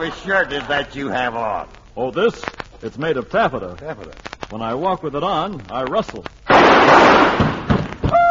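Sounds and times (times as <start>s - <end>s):
speech: 0.0s - 7.4s
gunshot sound effect in a radio comedy: 6.5s - 8.2s.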